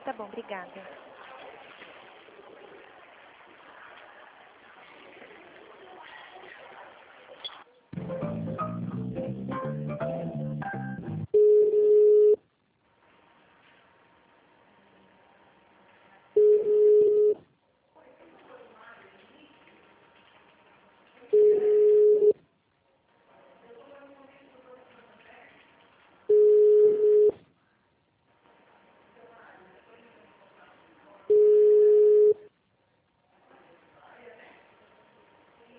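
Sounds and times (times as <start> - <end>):
phone line beeps during a call transfer through a hospital switchboard: 11.4 - 12.4, 16.4 - 17.4, 21.3 - 22.4, 26.3 - 27.4, 31.3 - 32.4
quiet phone line hiss: 16.4 - 17.4, 26.3 - 27.3, 31.3 - 32.5.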